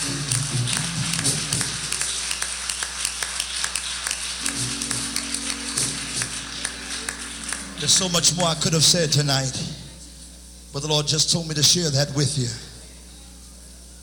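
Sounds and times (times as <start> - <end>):
audience clapping hands: 0.0 - 9.3
speech: 7.8 - 9.8, 10.8 - 12.7.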